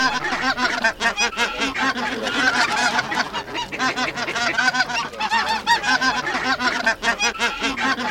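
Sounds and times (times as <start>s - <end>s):
Greater white-fronted goose flock calling with high yelping honks: 0.0s - 8.1s.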